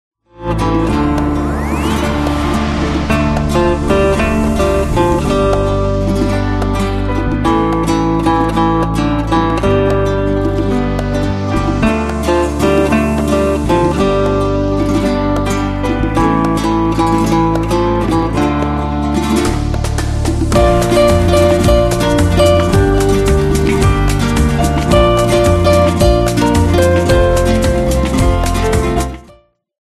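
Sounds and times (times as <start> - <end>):
guitar: 0.3 - 29.5.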